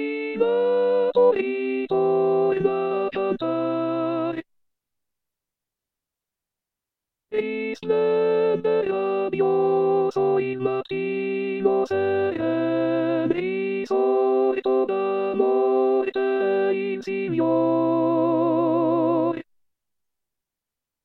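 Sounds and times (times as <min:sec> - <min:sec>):
contralto voices singing an Easter hymn: 0:00.0 - 0:04.4, 0:07.4 - 0:19.4.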